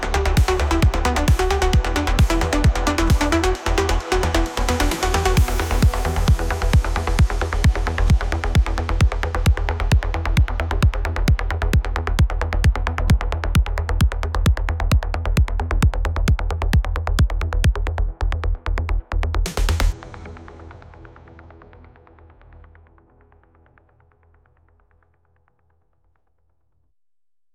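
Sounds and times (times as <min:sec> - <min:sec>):
techno music: 0:00.0 - 0:20.7.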